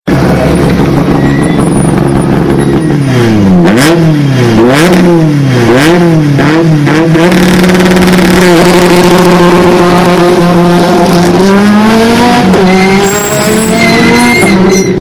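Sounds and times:
rally car taking off: 0:00.1 - 0:15.0.

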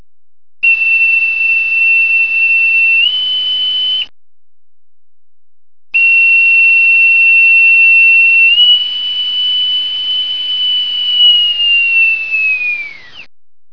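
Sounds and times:
boatswain's pipe whistle: 0:00.6 - 0:04.1, 0:06.0 - 0:13.3.

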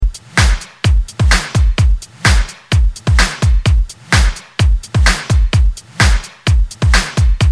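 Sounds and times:
beat: 0:00.0 - 0:07.5.

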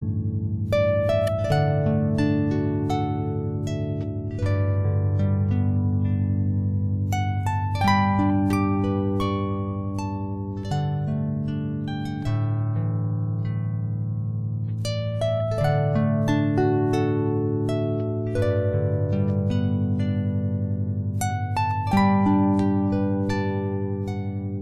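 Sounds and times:
harp: 0:00.0 - 0:24.6.

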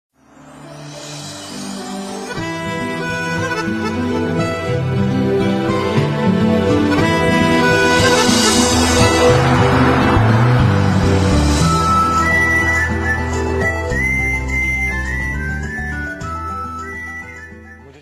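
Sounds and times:
violin: 0:00.9 - 0:18.0.

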